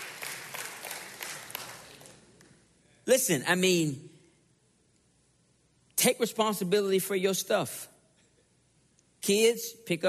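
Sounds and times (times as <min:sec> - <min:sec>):
audience applause: 0:00.0 - 0:02.2
speech: 0:03.1 - 0:04.1, 0:06.0 - 0:07.9, 0:09.3 - 0:10.0.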